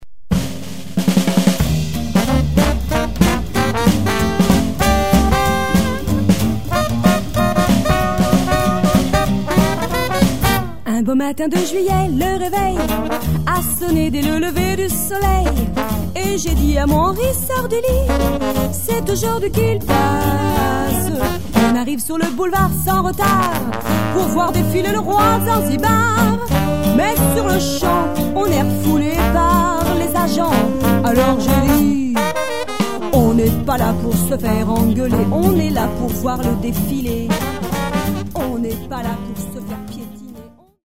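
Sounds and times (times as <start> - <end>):
jazz band playing: 0.4 - 10.9, 11.6 - 40.8.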